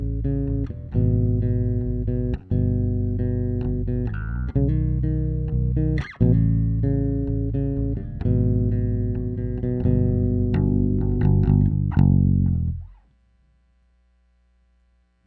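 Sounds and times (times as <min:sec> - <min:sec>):
bass takes: 0:00.0 - 0:15.2.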